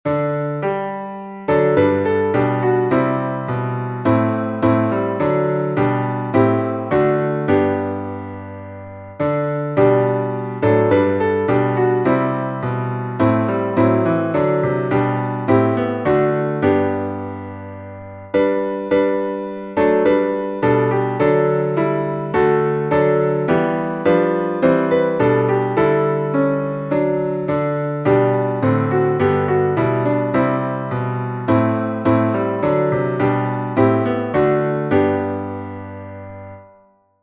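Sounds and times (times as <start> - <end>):
instrumental psalm music: 0.5 - 36.7.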